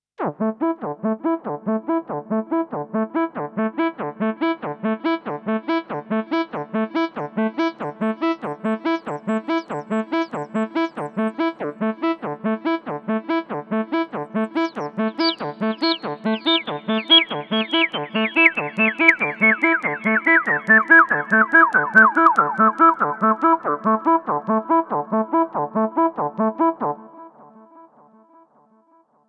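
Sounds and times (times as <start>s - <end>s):
arpeggiator with cutoff and resonance sweep: 0.2s - 28.4s.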